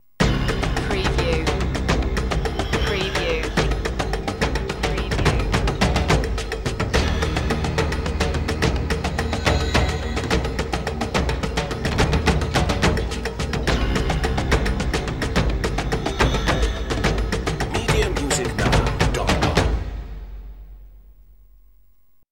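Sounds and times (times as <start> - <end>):
tribal drumming: 0.2 - 20.4.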